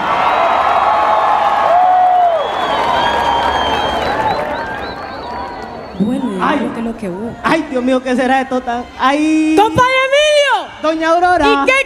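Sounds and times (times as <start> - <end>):
audience clapping: 0.0 - 6.0
audience cheering and whistling: 0.0 - 6.7
speech: 7.0 - 10.0, 10.8 - 11.8.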